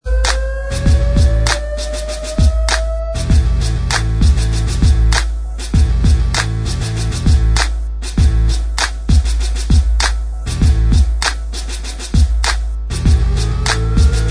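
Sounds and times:
instrumental backing track: 0.0s - 14.2s.

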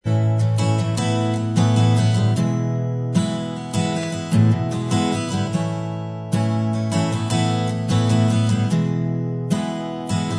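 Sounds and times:
acoustic instrumental music: 0.0s - 10.3s.

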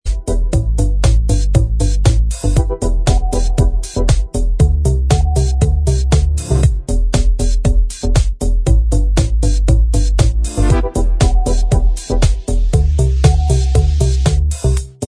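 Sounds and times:
instrumental backing track: 0.0s - 15.0s.

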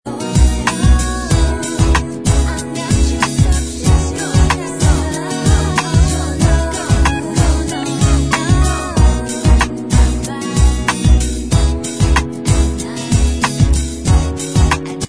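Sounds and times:
backing track: 0.1s - 15.0s
backing vocals: 0.6s - 11.8s.

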